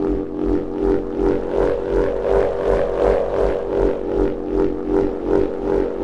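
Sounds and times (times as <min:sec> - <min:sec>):
wind wand drone: 0:00.0 - 0:06.0.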